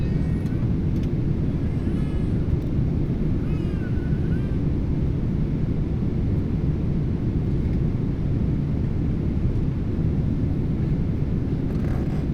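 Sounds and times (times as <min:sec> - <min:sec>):
Boeing 777 inflight cabin ambience: 0:00.0 - 0:12.3.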